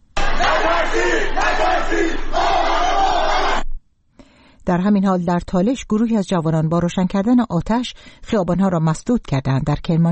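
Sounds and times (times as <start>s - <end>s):
crowd chanting protest slogans in unison: 0.1s - 3.7s
speech: 4.7s - 10.1s.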